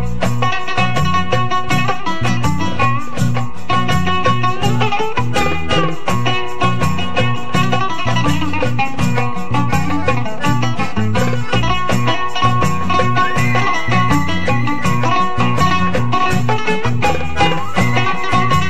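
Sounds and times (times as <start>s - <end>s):
oud playing dabke music: 0.0s - 18.6s.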